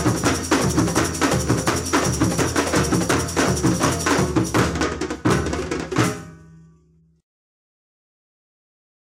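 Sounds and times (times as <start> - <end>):
merengue timbalada rhythm: 0.0 - 6.4.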